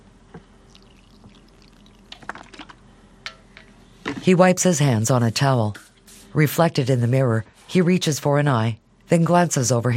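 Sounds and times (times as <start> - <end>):
soft drips and splashes of contact lens solution: 0.7 - 2.7
contact lens solution poured into a contact lens case: 0.7 - 2.8
speech: 4.2 - 9.9.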